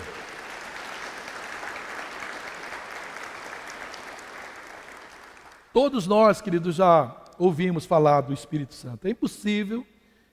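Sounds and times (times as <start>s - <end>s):
audience applauding: 0.0s - 5.7s
speech: 5.8s - 9.9s.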